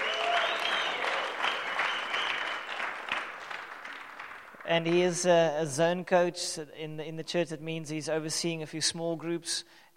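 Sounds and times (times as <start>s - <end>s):
audience applause welcoming a speaker at a church morning service: 0.0s - 4.7s
speech: 4.7s - 9.8s.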